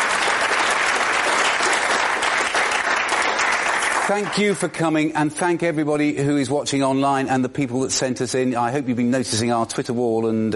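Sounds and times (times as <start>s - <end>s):
audience round of applause: 0.0s - 4.8s
speech: 4.1s - 10.5s.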